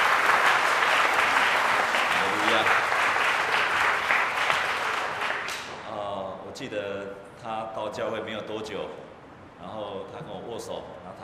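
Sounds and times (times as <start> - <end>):
audience applause: 0.0 - 5.7
speech: 2.6 - 2.8, 6.6 - 11.2.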